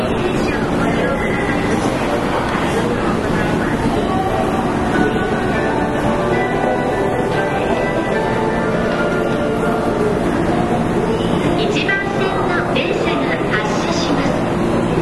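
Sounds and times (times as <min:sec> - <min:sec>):
Sanyo Electric Railway 5000 series train running between Maiko Park and Kobe Sannomiya: 0:00.0 - 0:15.0
voices murmuring: 0:00.0 - 0:15.0.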